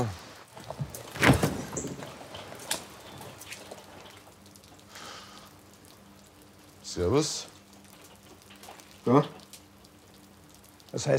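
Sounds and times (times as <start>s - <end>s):
door opening: 0.7s - 3.7s
speech: 7.0s - 7.5s, 9.0s - 9.4s, 11.0s - 11.1s.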